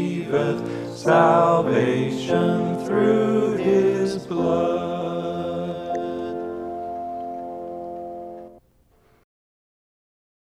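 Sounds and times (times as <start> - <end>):
hymn: 0.0 - 7.8.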